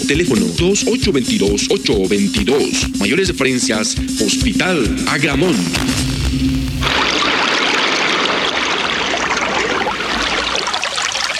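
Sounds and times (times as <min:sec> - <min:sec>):
speech: 0:00.1 - 0:07.0
running water: 0:06.8 - 0:11.3.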